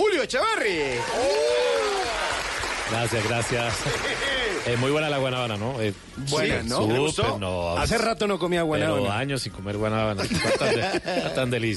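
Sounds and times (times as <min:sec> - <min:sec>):
speech: 0:00.2 - 0:01.7, 0:02.9 - 0:11.7
audience applause: 0:00.9 - 0:05.8
laughter: 0:03.4 - 0:04.7, 0:10.1 - 0:11.7.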